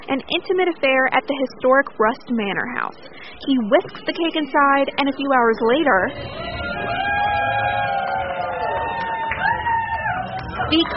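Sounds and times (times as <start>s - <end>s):
speech: 0.1s - 7.1s, 10.7s - 10.9s
family and friends cheering and whooping at a wedding cake cutting: 6.0s - 10.9s.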